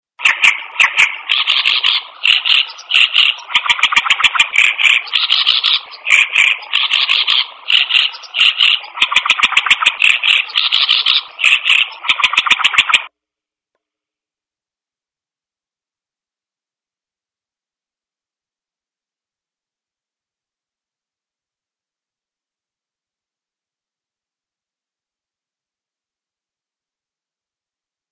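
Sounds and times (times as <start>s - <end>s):
unfamiliar bird calling: 0.2s - 13.1s.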